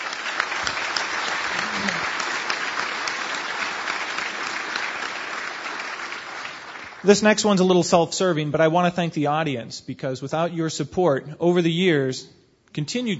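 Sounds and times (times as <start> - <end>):
audience applause: 0.0 - 7.2
speech: 7.0 - 13.1.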